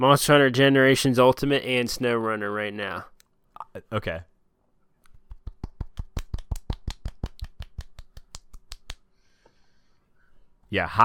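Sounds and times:
speech: 0.0 - 3.1, 3.7 - 4.3, 10.7 - 11.0
soft golf clap: 5.2 - 9.0.

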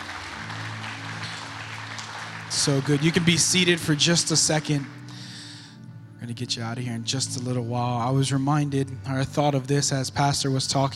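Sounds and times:
congregation clapping hands during a church worship service: 0.0 - 5.5
speech: 2.5 - 5.0, 6.3 - 10.9.

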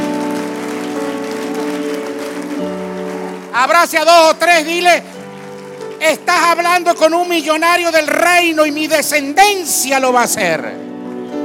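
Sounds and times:
audience applauding: 0.0 - 8.5
speech: 3.6 - 5.1, 6.0 - 10.9.

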